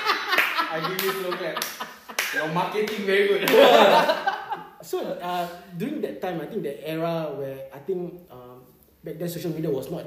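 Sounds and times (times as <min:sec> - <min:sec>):
laughter: 0:00.0 - 0:04.8
slow hand claps: 0:00.2 - 0:03.8
speech: 0:00.7 - 0:10.0.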